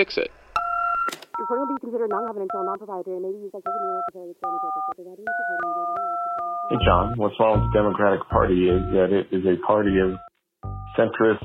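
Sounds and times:
speech: 0.0s - 0.4s, 1.1s - 6.1s, 6.7s - 11.4s
short electronic voicemail beep: 0.6s - 2.9s, 3.6s - 9.2s, 9.8s - 11.1s
bright paired telephone tones stepping up and down in pitch: 0.6s - 3.0s, 3.6s - 8.0s.

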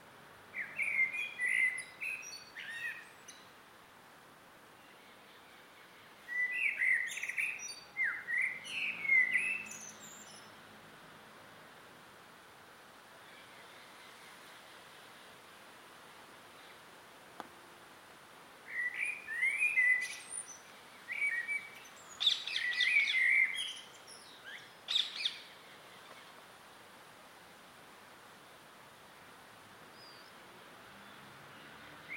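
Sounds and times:
close blackbird singing in an evening garden: 0.6s - 3.5s, 6.3s - 10.5s, 18.7s - 26.2s
evening garden birds singing: 0.6s - 3.5s, 4.8s - 10.6s, 18.7s - 26.4s, 31.0s - 32.1s.

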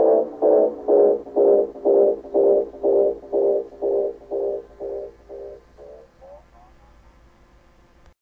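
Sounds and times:
theme on Roland RE201 Space Echo: 0.0s - 6.1s.

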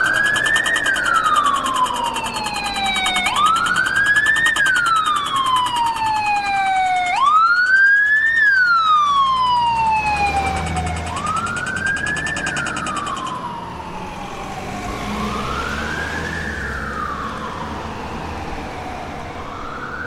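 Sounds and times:
ticking: 0.0s - 8.5s, 10.4s - 13.4s
tram siren: 0.0s - 20.0s.

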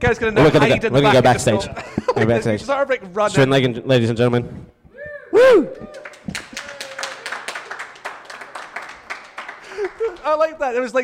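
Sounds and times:
speech: 0.0s - 6.6s, 10.2s - 11.0s
laughter: 0.4s - 2.6s, 8.4s - 10.6s
audience clapping: 5.7s - 10.7s.

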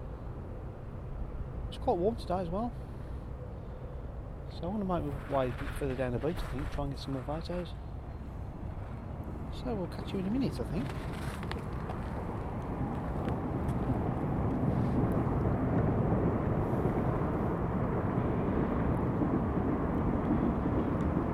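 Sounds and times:
train crossing a bridge: 0.0s - 21.3s
speech: 1.7s - 2.9s, 4.5s - 7.8s, 9.6s - 11.6s.

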